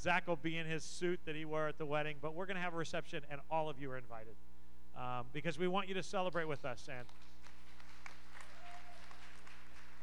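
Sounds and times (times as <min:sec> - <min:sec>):
speech: 0:00.0 - 0:07.4
faint low hum: 0:00.0 - 0:10.0
audience clapping: 0:06.4 - 0:10.0.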